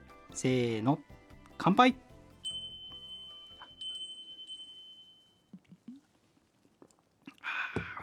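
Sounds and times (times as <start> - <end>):
speech: 0.4 - 2.0
wind chime ringing: 2.4 - 5.5.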